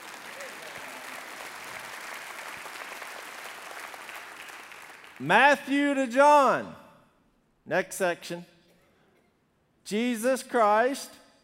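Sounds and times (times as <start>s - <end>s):
audience applause: 0.0s - 5.2s
speech: 5.2s - 6.8s, 7.7s - 8.5s, 9.9s - 11.2s.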